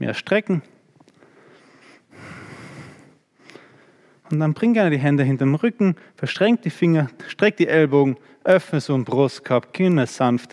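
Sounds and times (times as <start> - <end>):
speech: 0.0 - 0.8, 4.3 - 10.5
breathing through the nose during a yoga pose: 1.2 - 4.2.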